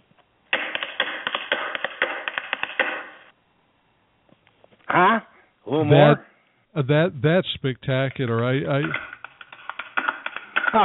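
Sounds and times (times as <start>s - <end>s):
tap dancing feet: 0.5s - 3.3s, 8.8s - 10.8s
speech: 5.0s - 9.1s.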